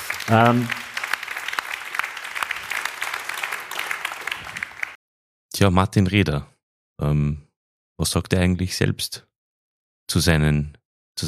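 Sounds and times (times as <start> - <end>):
applause: 0.0 - 5.0
speech: 0.3 - 0.8, 5.6 - 9.3, 10.1 - 11.2.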